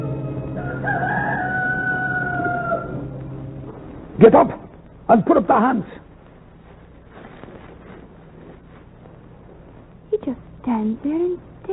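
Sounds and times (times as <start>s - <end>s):
rooster crowing: 0.0s - 3.2s
constant low hum: 0.0s - 11.7s
speech: 4.2s - 6.0s, 10.8s - 11.7s.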